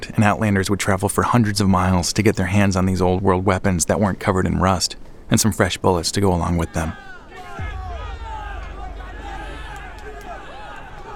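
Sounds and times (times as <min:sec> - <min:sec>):
speech: 0:00.2 - 0:07.7
angry mob yelling: 0:06.7 - 0:11.1
heavy low rumble: 0:07.6 - 0:11.1.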